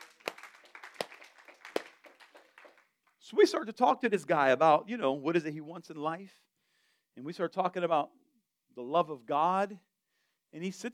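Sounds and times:
group clapping: 0.0s - 3.2s
speech: 3.3s - 6.5s, 7.2s - 8.2s, 8.8s - 9.9s, 10.5s - 10.9s.

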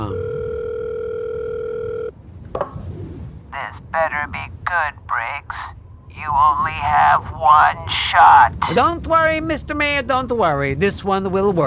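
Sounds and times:
telephone dial tone: 0.0s - 2.1s
speech: 6.3s - 11.6s.

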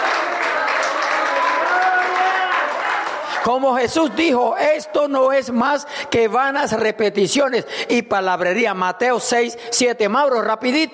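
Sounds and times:
audience applause: 0.0s - 4.2s
speech: 3.4s - 10.9s.

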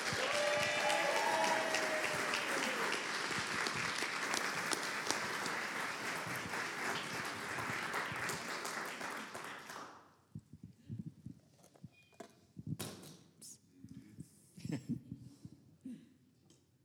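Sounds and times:
audience in Conejo Valley applauding a guest speaker: 0.0s - 10.0s.

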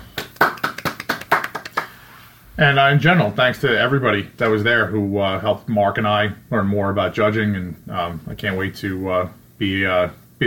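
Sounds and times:
hand claps: 0.0s - 2.0s
speech: 2.6s - 10.4s.

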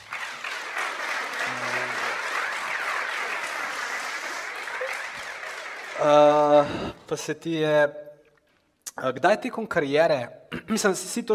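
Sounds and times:
audience applause: 0.0s - 7.0s
speech: 6.0s - 8.0s, 8.9s - 11.3s.

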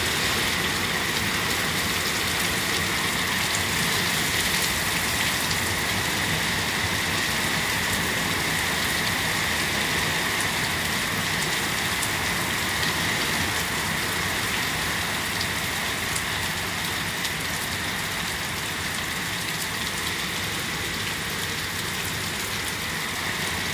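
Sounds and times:
rain in California: 0.0s - 23.7s.

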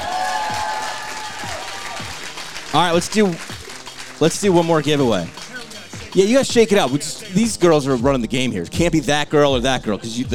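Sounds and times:
applause: 0.0s - 6.1s
audience cheering: 0.0s - 7.0s
speech: 2.8s - 3.5s, 4.2s - 5.4s, 6.1s - 10.3s.

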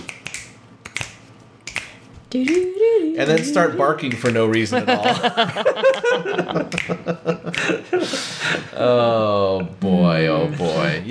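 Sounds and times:
finger snapping: 0.0s - 4.6s
speech: 2.3s - 11.0s
laughter: 4.5s - 9.0s.

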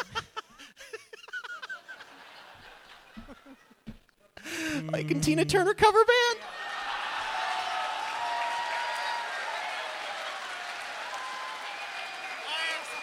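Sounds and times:
laughter: 0.0s - 4.0s
speech: 4.8s - 6.4s
audience applause during a comedy set: 6.4s - 13.0s.

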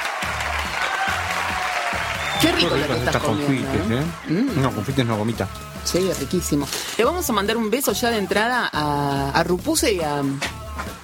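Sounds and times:
sustained applause from a large crowd: 0.0s - 5.5s
speech: 2.4s - 10.9s.

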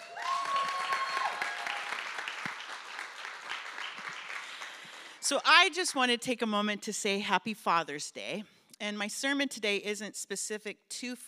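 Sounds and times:
audience applause for arriving speaker: 0.0s - 5.2s
speech: 5.3s - 11.2s.

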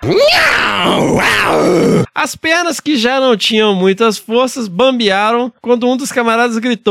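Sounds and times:
loud hoarse jaguar roar: 0.0s - 2.1s
speech: 0.0s - 6.8s.

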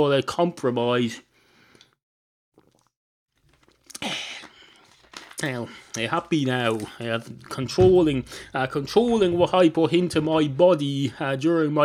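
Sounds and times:
speech: 0.0s - 1.3s, 5.4s - 11.8s
sipping water: 2.6s - 5.1s.

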